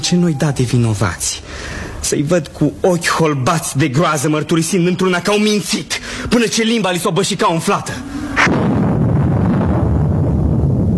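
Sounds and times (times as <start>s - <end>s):
speech: 0.0s - 8.6s
thunder rumbling: 7.8s - 10.9s.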